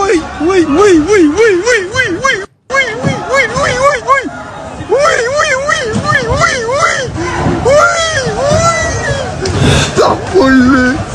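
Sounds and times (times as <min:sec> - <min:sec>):
shoppers screaming in crowded Lidl stores: 0:00.0 - 0:10.6.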